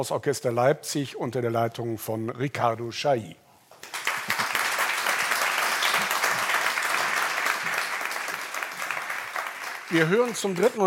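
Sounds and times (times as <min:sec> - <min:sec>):
speech: 0:00.0 - 0:03.4, 0:09.9 - 0:10.8
audience applause: 0:03.8 - 0:10.8.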